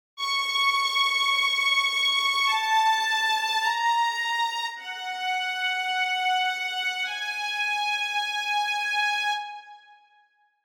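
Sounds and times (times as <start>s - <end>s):
strings: 0.2s - 9.8s.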